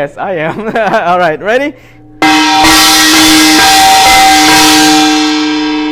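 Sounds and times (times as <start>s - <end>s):
speech: 0.0s - 2.0s
gong being struck: 2.2s - 5.9s.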